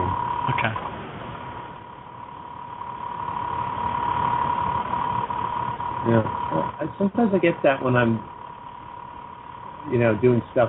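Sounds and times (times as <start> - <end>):
motor running, possibly a computer hard drive: 0.0 - 10.6
speech: 0.5 - 0.9, 6.1 - 8.3, 9.8 - 10.6.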